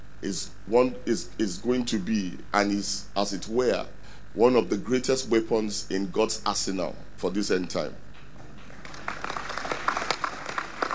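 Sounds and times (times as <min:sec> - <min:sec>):
speech: 0:00.2 - 0:08.0
weak audience clapping: 0:08.6 - 0:10.9.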